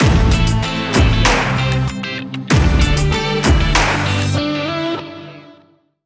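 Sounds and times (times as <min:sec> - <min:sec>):
lavish lifestyle music stinger: 0:00.0 - 0:05.4.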